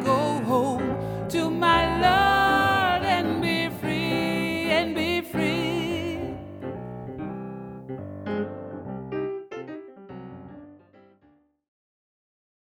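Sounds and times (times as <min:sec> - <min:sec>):
sopranos singing gospel: 0:00.0 - 0:07.1.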